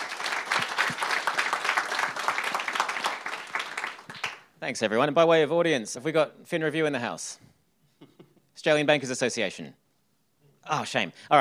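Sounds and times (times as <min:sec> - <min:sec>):
audience applause: 0:00.0 - 0:04.4
speech: 0:04.6 - 0:07.5, 0:08.6 - 0:09.8, 0:10.6 - 0:11.3.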